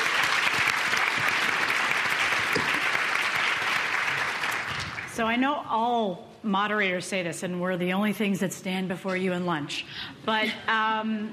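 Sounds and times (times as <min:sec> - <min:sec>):
audience applause at a conference session: 0:00.0 - 0:05.1
speech: 0:05.2 - 0:11.3.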